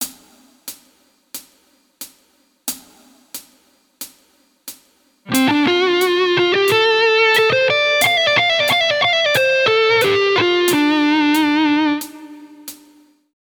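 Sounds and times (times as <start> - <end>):
guitar licks: 5.3 - 13.0.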